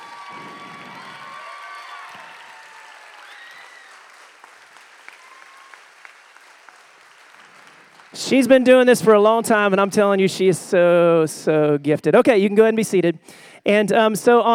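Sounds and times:
audience round of applause: 0.0s - 8.9s
speech: 8.1s - 14.5s.

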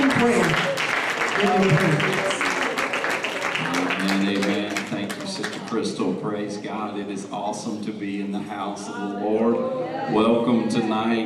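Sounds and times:
audience clapping hands: 0.0s - 6.0s
speech: 0.2s - 0.8s, 1.4s - 2.3s, 5.7s - 11.2s.

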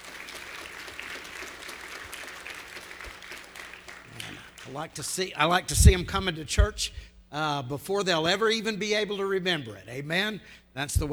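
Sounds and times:
audience applause: 0.0s - 4.8s
speech: 4.7s - 11.1s.

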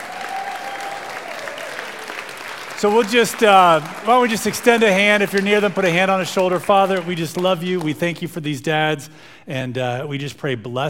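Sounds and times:
audience applause: 0.0s - 7.9s
speech: 2.8s - 10.8s.

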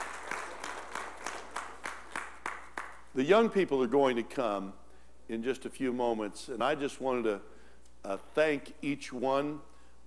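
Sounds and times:
audience applause: 0.0s - 3.0s
speech: 3.2s - 9.7s.

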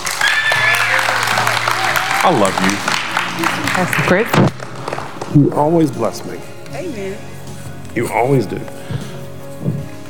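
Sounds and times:
audience clapping: 0.0s - 6.2s
speech: 2.2s - 4.6s, 5.3s - 7.3s, 7.9s - 9.1s.

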